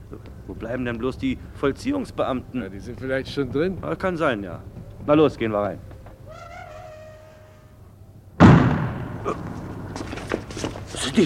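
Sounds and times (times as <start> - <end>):
speech: 0.1 - 5.9
gunshot in a radio play: 8.4 - 10.2.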